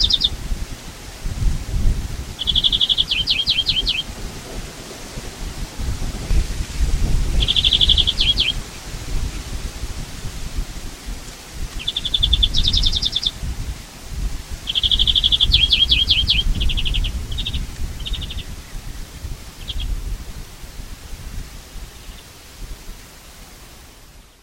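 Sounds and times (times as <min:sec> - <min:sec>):
European greenfinch trilling: 0:00.0 - 0:00.3, 0:02.4 - 0:04.1, 0:07.4 - 0:08.6, 0:11.8 - 0:13.4, 0:14.6 - 0:18.5
steady low rumbling wind and rustling: 0:00.0 - 0:24.4.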